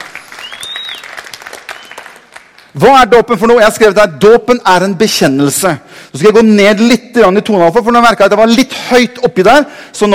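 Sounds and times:
audience applause: 0:00.0 - 0:02.7
speech: 0:02.7 - 0:10.1.

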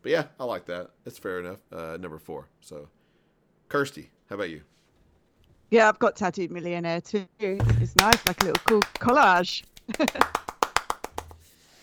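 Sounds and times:
speech: 0:00.0 - 0:03.0, 0:03.7 - 0:04.8, 0:05.7 - 0:10.4
hand clapping: 0:07.6 - 0:11.6.

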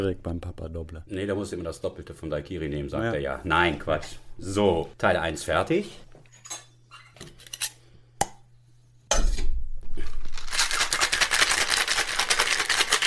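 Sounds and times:
speech: 0:00.0 - 0:06.6
ice shaken in a cocktail shaker: 0:10.3 - 0:13.0.

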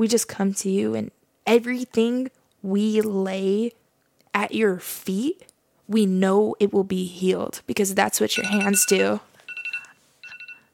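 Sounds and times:
speech: 0:00.0 - 0:09.3
phone alarm going off: 0:08.4 - 0:10.7.

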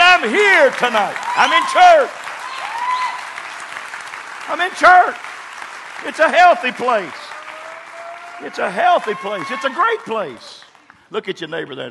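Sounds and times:
audience clapping: 0:00.0 - 0:11.4
speech: 0:00.2 - 0:02.3, 0:04.5 - 0:05.3, 0:06.0 - 0:07.2, 0:08.4 - 0:11.8
loud shout: 0:00.2 - 0:03.4, 0:06.2 - 0:10.6.

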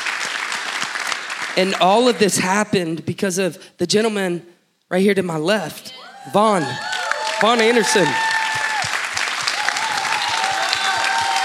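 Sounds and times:
audience applause: 0:00.0 - 0:01.8, 0:06.7 - 0:11.4
speech: 0:01.6 - 0:08.3.

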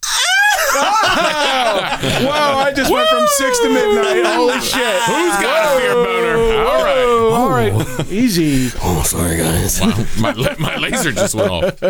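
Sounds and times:
person imitating a squealing scream: 0:00.0 - 0:01.1, 0:02.4 - 0:08.1
laughter: 0:00.0 - 0:11.8
speech: 0:03.3 - 0:06.0, 0:07.7 - 0:11.8.

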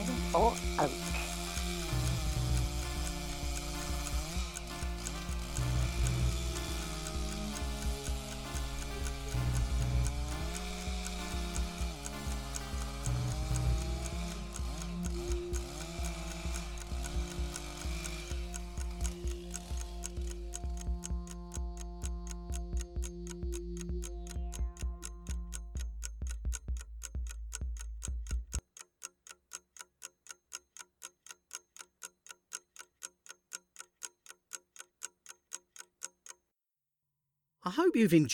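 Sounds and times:
sustained tonal music: 0:00.0 - 0:27.4
clock ticking: 0:00.0 - 0:36.5
speech: 0:37.7 - 0:38.3.

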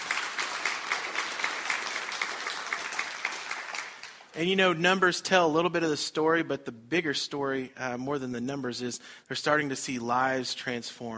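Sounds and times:
audience applause: 0:00.0 - 0:04.4
speech: 0:04.4 - 0:11.1.

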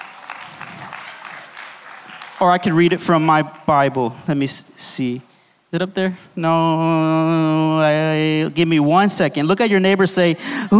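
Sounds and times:
audience clapping: 0:00.0 - 0:03.7
speech: 0:02.4 - 0:10.7.

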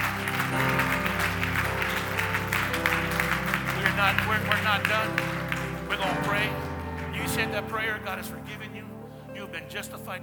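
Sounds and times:
audience applause: 0:00.0 - 0:08.1
speech: 0:04.4 - 0:08.9, 0:09.5 - 0:10.2.

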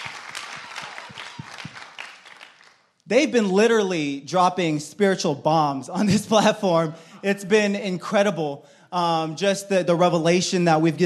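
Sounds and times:
audience applause: 0:00.0 - 0:02.8
speech: 0:03.1 - 0:11.0.

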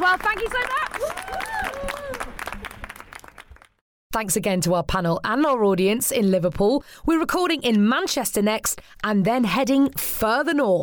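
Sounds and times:
audience applause: 0:00.0 - 0:03.8
whoops and cheers: 0:00.8 - 0:02.5
speech: 0:04.2 - 0:10.8.

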